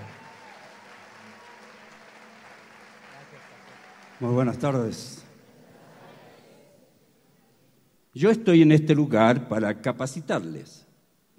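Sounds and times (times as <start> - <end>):
audience applause welcoming a speaker: 0.0 - 5.5
speech: 4.2 - 5.2, 8.2 - 10.9.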